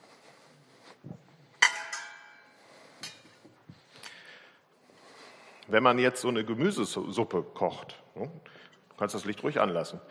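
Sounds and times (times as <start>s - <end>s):
large metal cooking pot clanking: 1.6s - 3.3s
speech: 5.7s - 10.0s.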